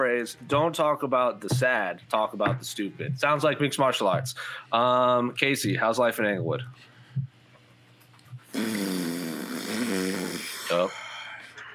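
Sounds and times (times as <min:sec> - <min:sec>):
speech: 0:00.2 - 0:06.9, 0:08.5 - 0:11.0
soft low thumps: 0:01.4 - 0:04.4, 0:05.6 - 0:07.4
buzzy fart noise: 0:08.4 - 0:10.9.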